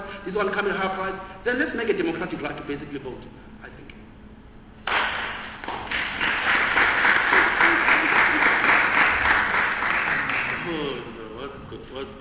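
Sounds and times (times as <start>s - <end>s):
speech: 0.2s - 3.5s, 12.0s - 12.2s
audience clapping: 4.8s - 10.9s.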